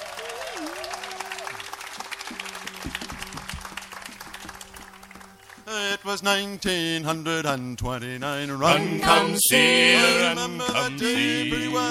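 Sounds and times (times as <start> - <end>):
audience applause: 0.0 - 6.0
speech: 5.7 - 11.8.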